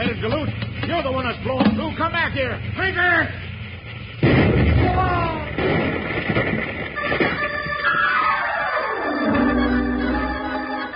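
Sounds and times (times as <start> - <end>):
speech: 0.1 - 3.5
roaring crashing din of a train wreck: 4.2 - 10.5
steam train boiler explosion blast: 4.2 - 10.8.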